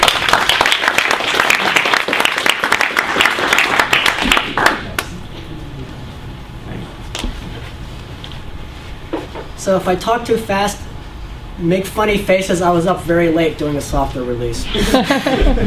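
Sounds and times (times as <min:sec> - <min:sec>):
audience applause welcoming a speaker to a talk on GNU/Linux: 0:00.0 - 0:05.0
speech: 0:09.7 - 0:10.8, 0:11.6 - 0:15.6
laughter: 0:14.6 - 0:15.6.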